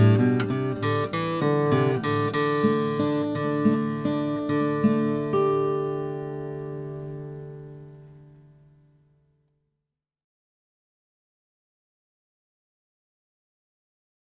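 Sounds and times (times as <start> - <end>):
sunburst 13 fret acoustic guitar playing: 0.0 - 9.2.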